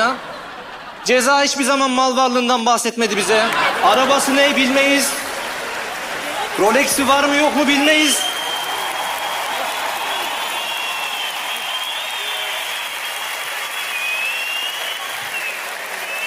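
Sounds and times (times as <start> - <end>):
laughter: 0.0 - 2.0, 2.8 - 7.9
speech: 1.0 - 5.3, 6.6 - 8.3
audience applause: 3.4 - 16.2.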